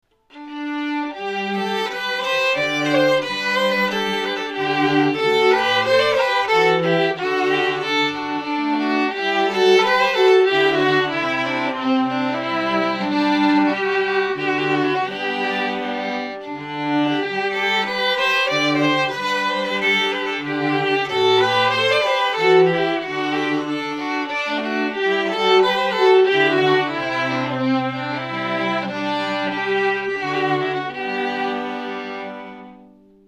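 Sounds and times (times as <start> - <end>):
string quartet playing a fiddle tune: 0.2 - 33.2.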